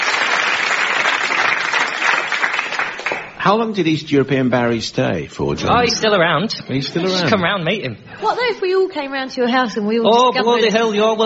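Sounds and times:
audience applause: 0:00.0 - 0:03.4
speech: 0:03.4 - 0:11.2.

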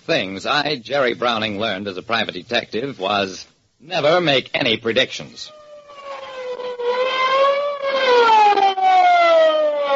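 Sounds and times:
speech: 0:00.1 - 0:05.6
police car siren approaching: 0:05.5 - 0:09.9.

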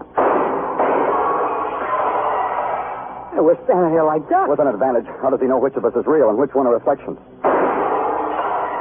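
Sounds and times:
gunshot in an audio drama: 0:00.1 - 0:01.8, 0:07.4 - 0:08.7
speech: 0:03.4 - 0:07.4.

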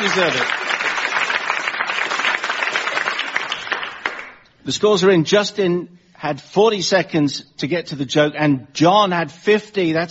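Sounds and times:
speech: 0:00.0 - 0:00.8, 0:04.7 - 0:10.0
applause: 0:00.0 - 0:04.4.

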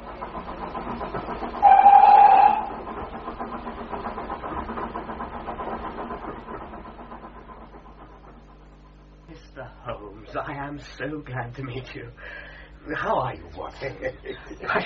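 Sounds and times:
train running on rails: 0:00.0 - 0:10.1
speech: 0:10.6 - 0:14.8
laughter: 0:13.8 - 0:14.8.

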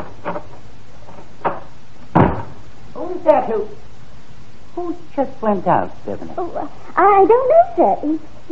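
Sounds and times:
fire exit door thuds: 0:01.4 - 0:02.6
speech: 0:03.2 - 0:03.9, 0:04.8 - 0:08.5.

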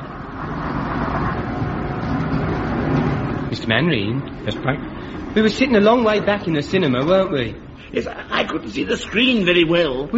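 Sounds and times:
bus engine running heard from inside: 0:00.0 - 0:10.1
speech: 0:03.6 - 0:10.1.

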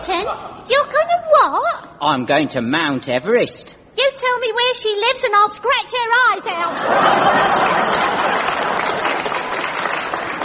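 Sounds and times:
laughter: 0:00.0 - 0:00.8, 0:06.4 - 0:09.5
speech: 0:00.1 - 0:03.8, 0:04.4 - 0:08.6
audience applause: 0:06.9 - 0:10.4.

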